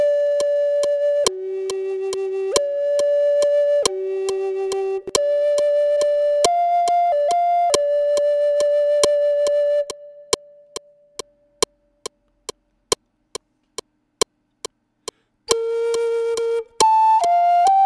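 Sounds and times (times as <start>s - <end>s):
flute: 0.0s - 11.0s, 15.5s - 17.8s.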